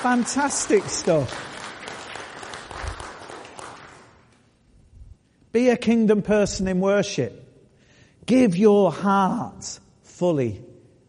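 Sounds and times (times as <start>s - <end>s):
speech: 0.0s - 1.6s, 5.5s - 7.4s, 8.3s - 10.7s
audience applause for the band: 0.0s - 4.2s.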